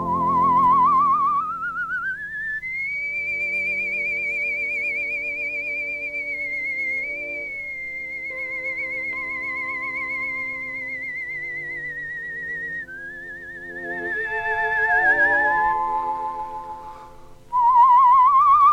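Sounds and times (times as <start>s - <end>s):
man whistling a slow sustained melody: 0.0s - 18.7s
soft orchestral accompaniment: 2.8s - 17.6s.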